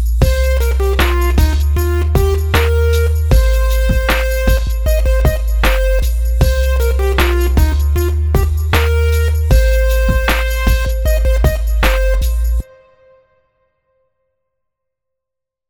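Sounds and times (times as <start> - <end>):
simple sixteenth note rhythms: 0.2 - 12.8.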